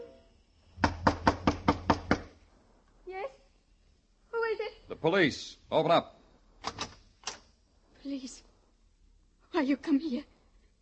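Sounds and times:
firm knocks on a door: 0:00.8 - 0:02.4
speech: 0:05.0 - 0:06.2, 0:08.1 - 0:08.5, 0:09.6 - 0:10.3.

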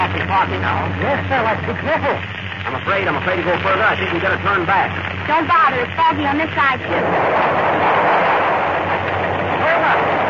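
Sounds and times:
speech: 0:00.3 - 0:07.9
rolling thunder from an approaching storm: 0:06.8 - 0:10.2.

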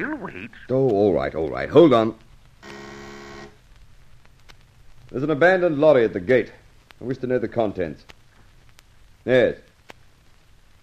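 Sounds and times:
speech: 0:00.0 - 0:02.8, 0:05.1 - 0:08.2, 0:09.2 - 0:09.7
intercom buzzer: 0:02.6 - 0:03.6.

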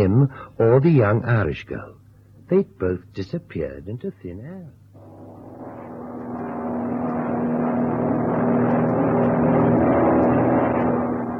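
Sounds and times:
speech: 0:00.0 - 0:04.8
airplane engine drone in flight: 0:04.8 - 0:11.3.

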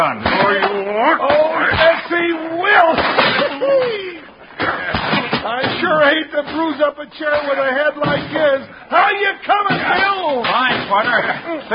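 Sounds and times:
speech: 0:00.0 - 0:03.0, 0:06.0 - 0:11.7
punch to the face in a fight: 0:00.0 - 0:11.7.

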